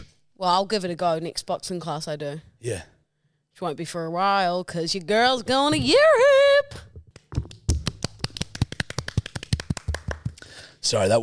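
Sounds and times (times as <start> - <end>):
speech: 0.4 - 2.9, 3.6 - 6.8, 10.8 - 11.2
people applauding: 7.5 - 10.4.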